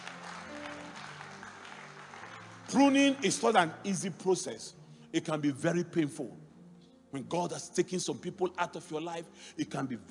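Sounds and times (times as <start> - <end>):
church congregation clapping for Jesus at the close of a sermon: 0.0 - 4.4
speech: 2.7 - 6.4, 7.1 - 10.0.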